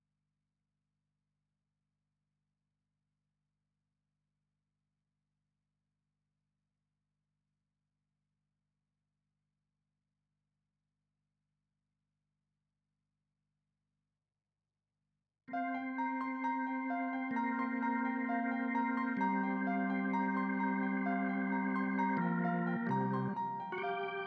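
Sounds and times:
synths and keys: 0:15.5 - 0:24.2.

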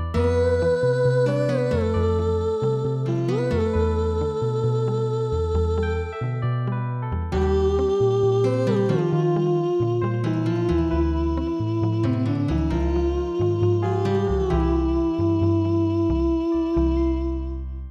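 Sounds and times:
new wave bossa nova music: 0:00.2 - 0:17.7.

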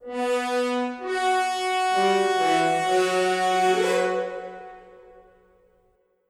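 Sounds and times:
music fanfare: 0:00.0 - 0:05.4.

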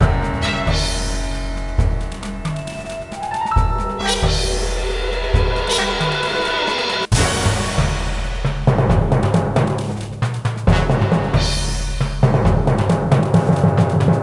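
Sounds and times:
king battle music: 0:00.0 - 0:14.1.

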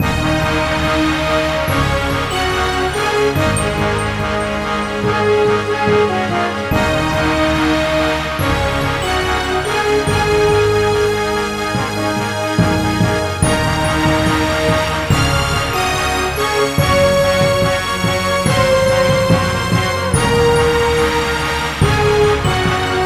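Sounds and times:
orchestral main theme with timpani: 0:00.0 - 0:23.0.

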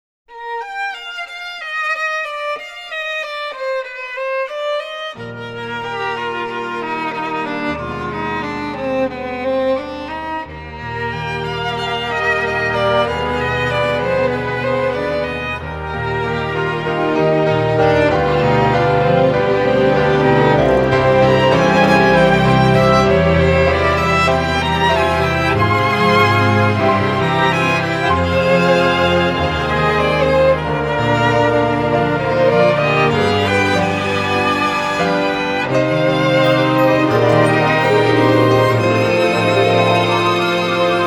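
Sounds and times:
two violins playing: 0:00.3 - 0:41.0.

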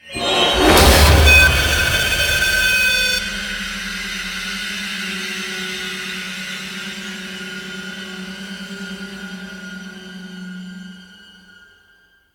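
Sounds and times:
music sting: 0:00.0 - 0:05.6.

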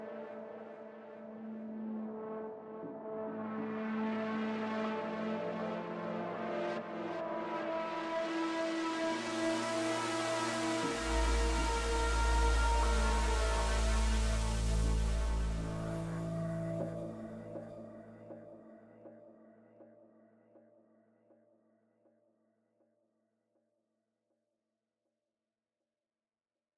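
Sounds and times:
synths and pads: 0:00.0 - 0:18.8.

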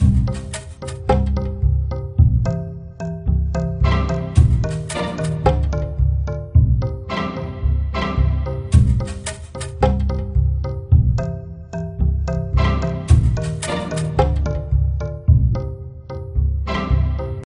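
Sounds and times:
jungle level music: 0:00.0 - 0:17.4.

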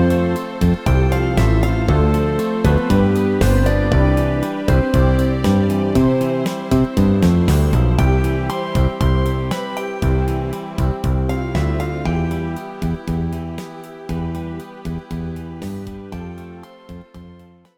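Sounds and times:
menu background music: 0:00.0 - 0:14.1.

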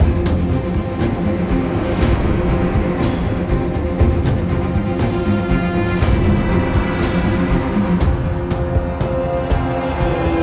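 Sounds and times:
string instrument: 0:00.0 - 0:10.4.

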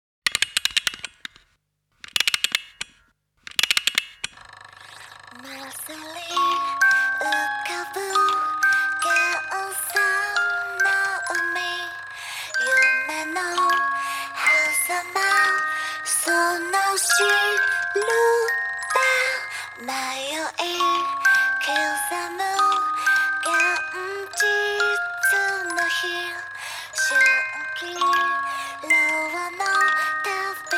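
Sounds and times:
French wind-up doll playing a lullaby: 0:00.3 - 0:01.4, 0:02.0 - 0:30.7.

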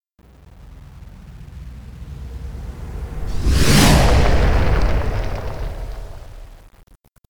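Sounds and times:
fly-by whoosh: 0:02.4 - 0:06.6.

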